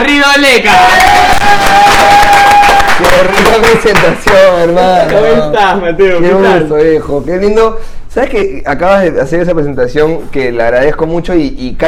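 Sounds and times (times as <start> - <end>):
speech: 0.4 - 2.3, 3.0 - 11.8
audience applause: 0.7 - 4.5.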